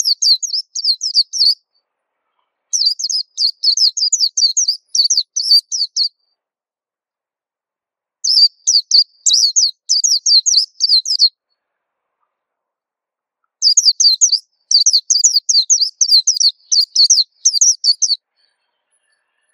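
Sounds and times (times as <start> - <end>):
white-eye song: 0.0 - 1.8, 2.8 - 6.4, 8.2 - 11.3, 13.6 - 19.5.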